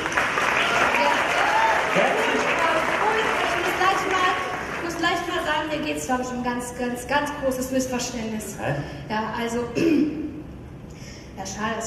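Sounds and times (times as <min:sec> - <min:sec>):
audience applause: 0:00.0 - 0:05.5
speech: 0:05.8 - 0:10.2, 0:11.4 - 0:11.8.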